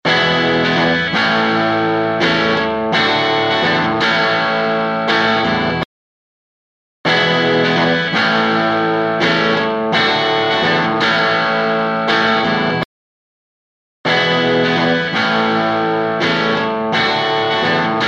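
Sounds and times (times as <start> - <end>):
guitar: 0.0 - 5.9, 7.0 - 12.9, 14.0 - 18.0.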